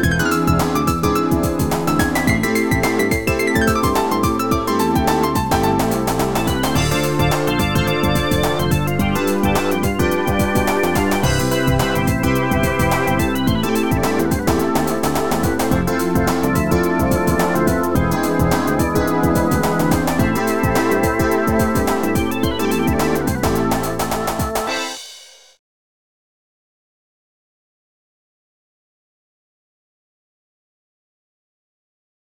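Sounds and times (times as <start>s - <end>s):
groove music: 0.0s - 25.0s.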